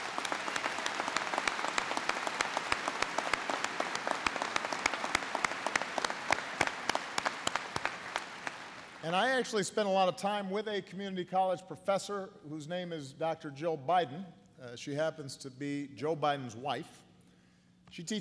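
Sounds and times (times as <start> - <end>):
audience applause for graduates' families: 0.0 - 9.1
speech: 9.1 - 17.0, 17.9 - 18.1.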